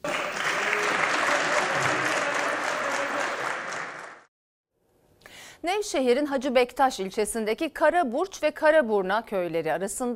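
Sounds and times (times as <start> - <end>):
applause in parliament chamber: 0.0 - 4.3
speech: 5.6 - 10.1.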